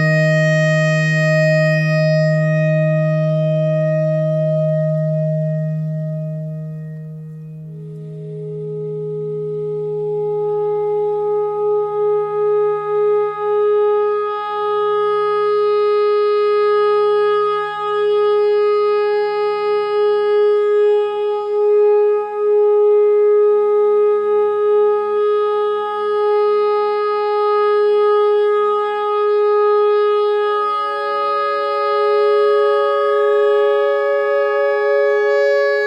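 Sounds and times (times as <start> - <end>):
clarinet notes in E pentatonic: 0.0 - 35.8.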